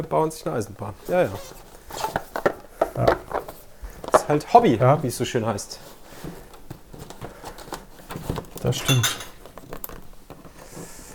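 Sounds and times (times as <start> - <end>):
speech: 0.0 - 2.2, 4.3 - 6.4, 8.7 - 9.2
dishes clinking while emptying dishwasher: 8.8 - 9.4.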